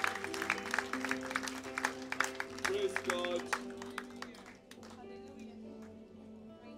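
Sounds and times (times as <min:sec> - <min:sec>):
church congregation clapping: 0:00.0 - 0:05.0.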